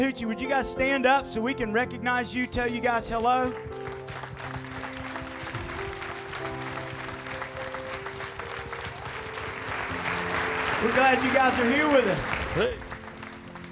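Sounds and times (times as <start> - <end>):
speech: 0.0 - 4.2, 10.8 - 12.9
audience clapping hands: 3.0 - 13.6.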